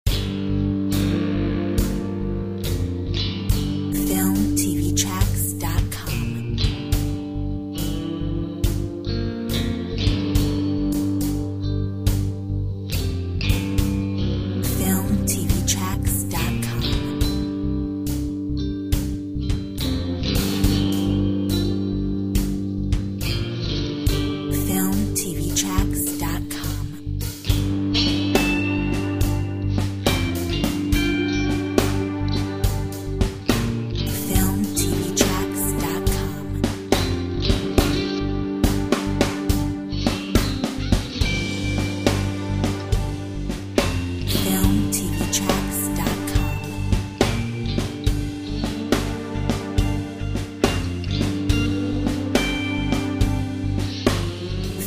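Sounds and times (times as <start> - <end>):
desert blues music: 0.0 - 54.8.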